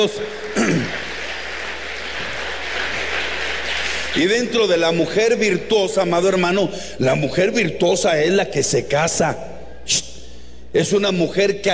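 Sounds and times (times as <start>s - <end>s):
speech: 0.0s - 1.1s, 4.2s - 10.1s, 10.7s - 11.7s
audience applause: 0.0s - 4.6s.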